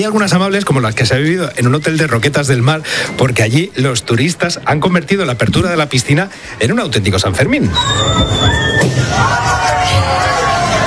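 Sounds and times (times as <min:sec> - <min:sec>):
speech: 0:00.0 - 0:10.2
person whistling: 0:07.7 - 0:09.1.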